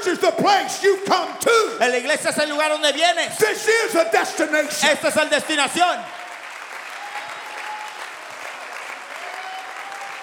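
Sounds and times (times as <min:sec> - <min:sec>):
speech: 0:00.1 - 0:06.2
audience clapping hands: 0:04.8 - 0:10.2.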